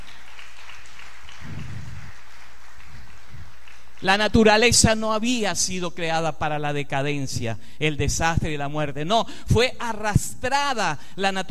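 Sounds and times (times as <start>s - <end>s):
audience applause: 0.0s - 4.1s
speech: 4.0s - 11.5s.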